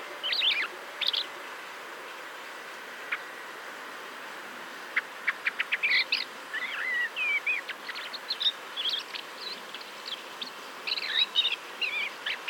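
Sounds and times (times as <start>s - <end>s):
soft background hiss: 0.0s - 12.4s
common blackbird calls: 5.0s - 12.4s.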